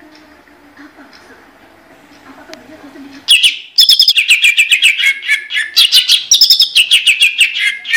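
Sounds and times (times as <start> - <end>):
greater green leafbird song: 3.3 - 7.9.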